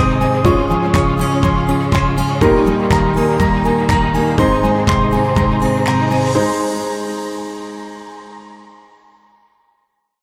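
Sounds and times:
upbeat acoustic guitar: 0:00.0 - 0:06.4.

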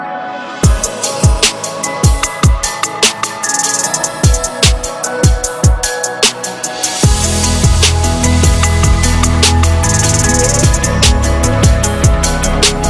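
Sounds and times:
fashion beat music: 0:00.6 - 0:12.8.

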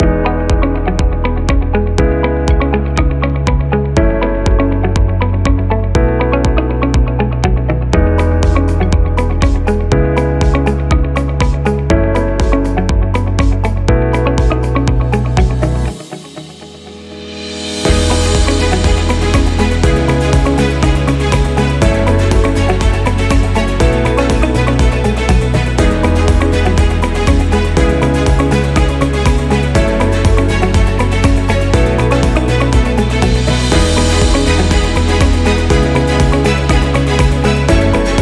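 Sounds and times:
promo slideshow music: 0:00.0 - 0:38.2.

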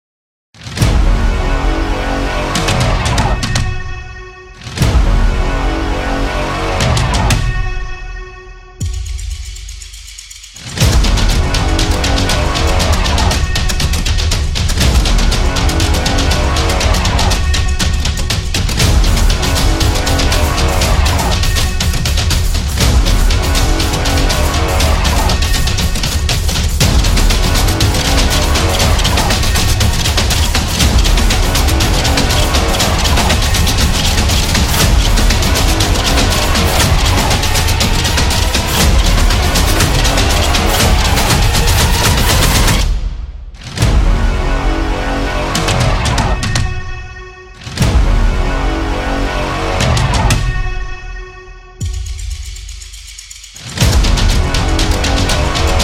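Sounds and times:
epic trailer build-up music: 0:00.6 - 0:51.0, 0:51.7 - 0:55.8.

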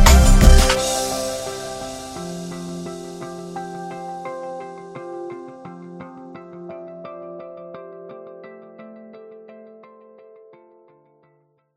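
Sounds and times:
cute lofi music: 0:00.0 - 0:07.2.

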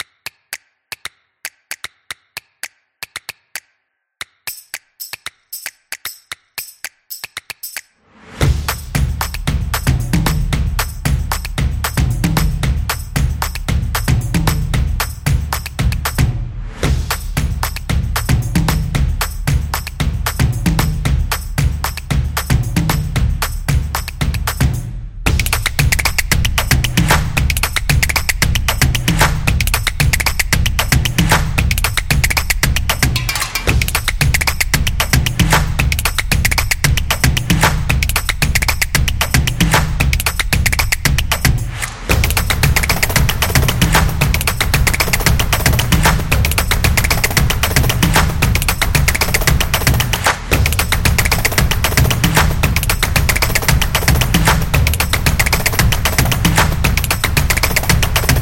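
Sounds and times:
dynamic drum opener: 0:05.0 - 0:58.4.

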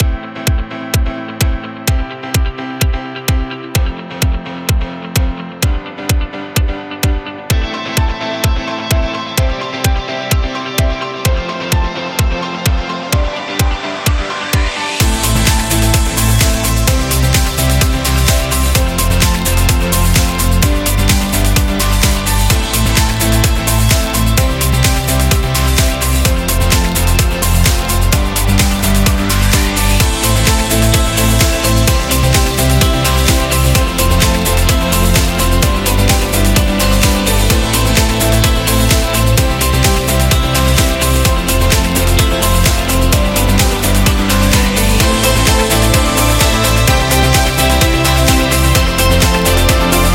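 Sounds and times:
pop rock music: 0:00.0 - 0:50.1.

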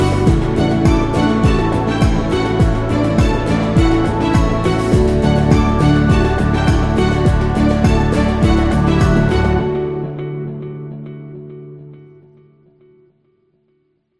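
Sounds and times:
positive corporate music: 0:00.0 - 0:10.2.

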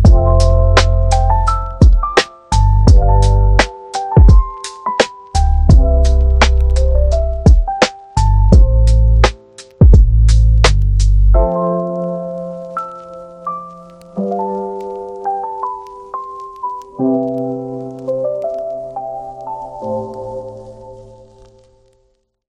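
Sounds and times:
podcast beat: 0:00.0 - 0:11.7.

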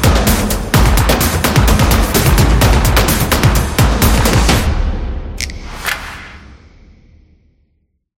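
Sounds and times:
percussive drums: 0:00.0 - 0:04.7.

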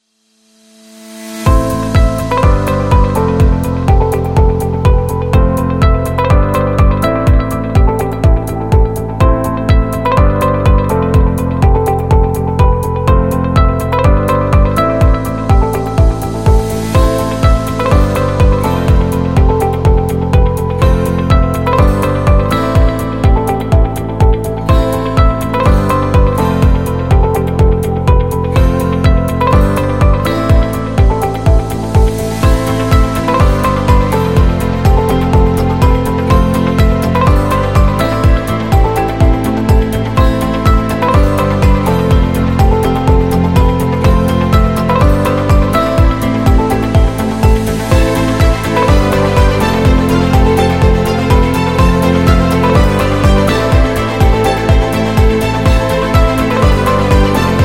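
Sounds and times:
business corporate music: 0:00.6 - 0:57.6.

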